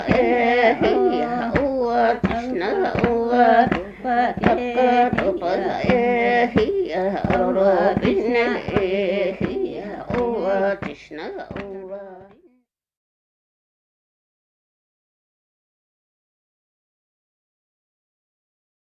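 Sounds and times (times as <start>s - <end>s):
polyphonic music: 0.0s - 12.2s.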